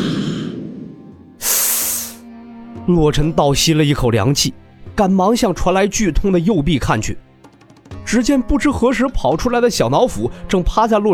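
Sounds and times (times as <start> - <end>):
breathy rushing swish: 0.0 - 2.2
whoosh of someone flying away: 1.4 - 2.3
speech: 2.9 - 7.3, 8.1 - 11.1.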